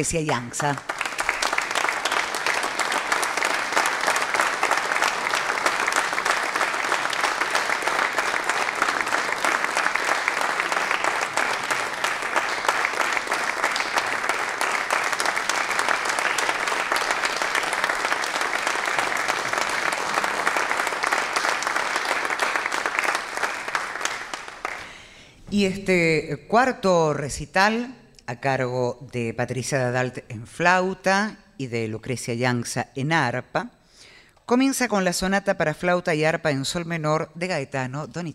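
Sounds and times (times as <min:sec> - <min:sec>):
speech: 0:00.0 - 0:01.0, 0:25.6 - 0:33.7, 0:34.5 - 0:38.3
audience applause in auditorium: 0:00.6 - 0:25.1.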